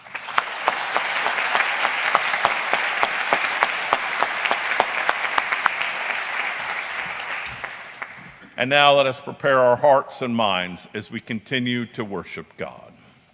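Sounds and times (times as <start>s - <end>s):
Presbyterian church congregation applauding a guest preacher at a Sunday service: 0.0s - 8.5s
speech: 8.6s - 12.9s.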